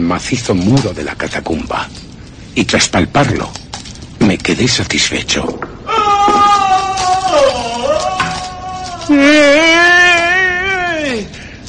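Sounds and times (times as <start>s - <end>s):
speech: 0.0s - 2.0s, 2.6s - 3.6s, 4.2s - 5.8s, 9.1s - 9.8s
man's anguished screams and howls: 5.8s - 11.4s.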